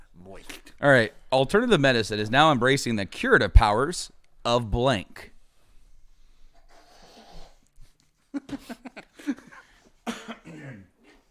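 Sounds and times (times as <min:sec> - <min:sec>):
speech: 0:00.3 - 0:05.3, 0:08.4 - 0:09.4
coughing: 0:09.2 - 0:11.2.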